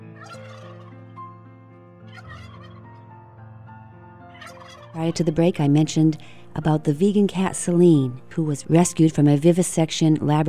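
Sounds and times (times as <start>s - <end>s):
turkey gobbling: 0.1s - 1.1s, 2.1s - 3.0s, 4.3s - 5.0s
speech: 4.5s - 10.4s.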